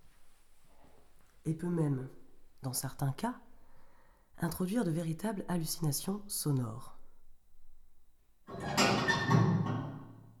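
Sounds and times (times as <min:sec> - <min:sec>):
speech: 0:01.4 - 0:03.5, 0:04.4 - 0:07.0
binaural door sound: 0:08.5 - 0:10.3.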